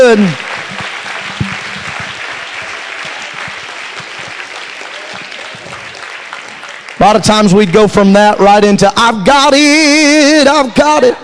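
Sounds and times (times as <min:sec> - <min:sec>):
speech: 0:00.0 - 0:00.5, 0:07.0 - 0:11.2
audience applause: 0:00.0 - 0:07.7.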